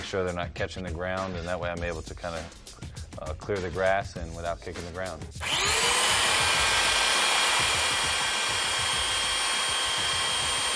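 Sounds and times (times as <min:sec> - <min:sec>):
speech: 0:00.1 - 0:05.8
sanding machine grinding down football kicking cleat studs: 0:05.4 - 0:10.7.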